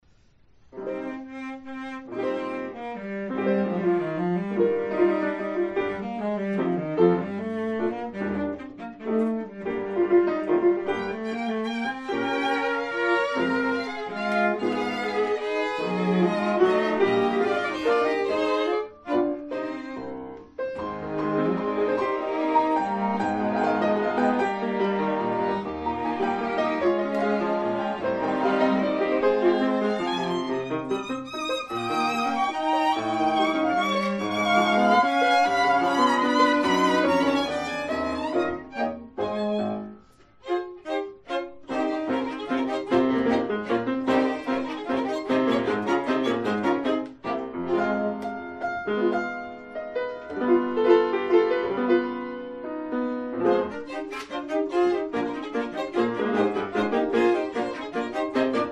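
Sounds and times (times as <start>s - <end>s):
piano quartet: 0.0s - 58.6s.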